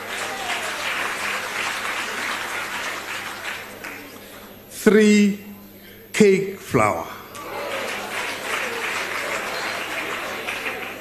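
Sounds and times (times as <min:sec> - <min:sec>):
crowd clapping: 0:00.0 - 0:04.2, 0:07.3 - 0:10.9
speech: 0:04.8 - 0:05.5, 0:06.2 - 0:07.1.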